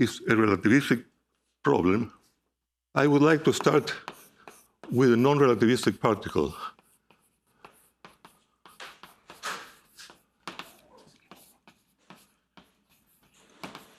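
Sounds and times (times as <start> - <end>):
speech: 0.0 - 2.2, 2.9 - 4.2, 4.8 - 6.8
chalk writing on a blackboard during a physics lecture: 3.3 - 13.9.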